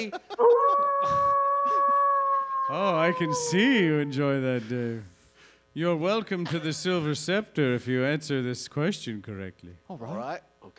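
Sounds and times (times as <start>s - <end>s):
speech: 0.0s - 1.3s, 2.7s - 5.1s, 5.8s - 10.7s
voice imitating a wolf howl: 0.4s - 4.5s.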